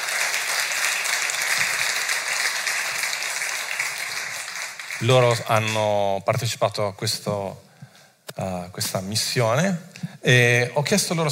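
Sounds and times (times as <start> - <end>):
crowd applauding: 0.0 - 5.8
speech: 5.0 - 7.7, 8.4 - 11.3.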